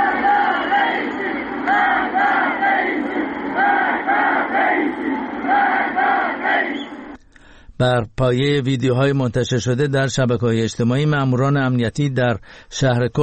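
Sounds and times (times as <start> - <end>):
protesters chanting anti-government slogans: 0.0 - 7.2
speech: 7.8 - 13.2.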